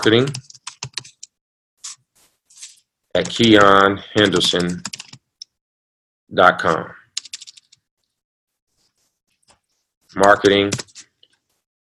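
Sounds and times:
speech: 0:00.0 - 0:00.4, 0:03.1 - 0:04.9, 0:06.3 - 0:07.0, 0:10.1 - 0:10.9
keys tapped on a computer keyboard: 0:00.2 - 0:01.4, 0:02.6 - 0:05.2, 0:07.2 - 0:07.8, 0:10.2 - 0:11.0.

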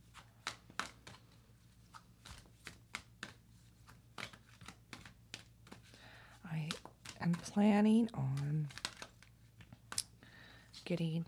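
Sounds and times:
enchanted map oracle cards being shuffled and pulled from a deck: 0:00.0 - 0:10.8
speech: 0:06.5 - 0:08.5, 0:10.9 - 0:11.2.

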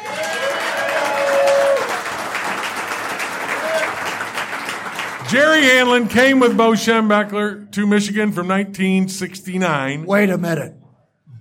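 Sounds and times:
audience applause at a live show from Karl's Cabin in Michigan: 0:00.0 - 0:06.3
speech: 0:05.3 - 0:10.8.

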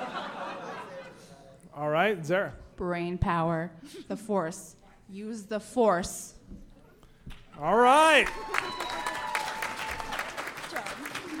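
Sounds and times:
laughter: 0:00.0 - 0:01.5, 0:10.7 - 0:11.3
speech: 0:01.8 - 0:06.6, 0:07.6 - 0:08.8
audience applause: 0:07.6 - 0:11.3.

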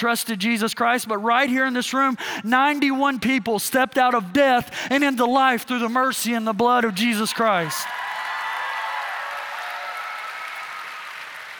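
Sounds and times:
speech: 0:00.0 - 0:08.0
crowd clapping: 0:07.7 - 0:11.5.

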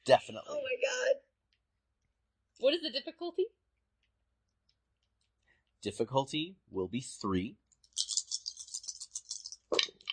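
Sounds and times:
speech: 0:00.0 - 0:01.2, 0:02.6 - 0:03.6, 0:05.8 - 0:07.6
dice being rolled: 0:07.9 - 0:10.1.

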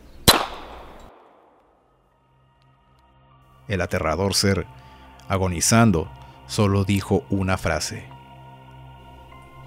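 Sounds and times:
gunshot fired at a creature's heart: 0:00.2 - 0:01.6
speech: 0:03.7 - 0:08.1.

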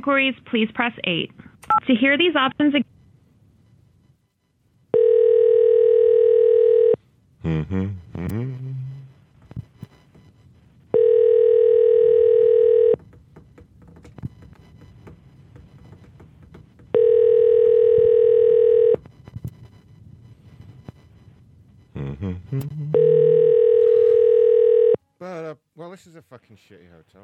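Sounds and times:
speech: 0:00.0 - 0:02.9, 0:07.4 - 0:08.8, 0:26.0 - 0:27.2
telephone ringing unanswered: 0:04.9 - 0:07.0, 0:10.9 - 0:13.0, 0:16.9 - 0:19.0, 0:23.0 - 0:25.0.

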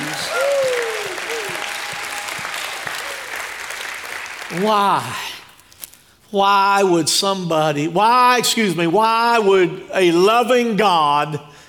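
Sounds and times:
shouts of praise: 0:00.0 - 0:03.5
audience applause: 0:00.0 - 0:05.2
speech: 0:04.5 - 0:05.3, 0:06.3 - 0:11.5.

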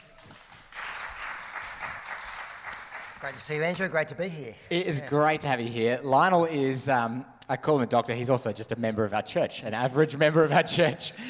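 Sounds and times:
church audience applause welcoming a speaker: 0:00.0 - 0:03.7
speech: 0:03.2 - 0:11.2.

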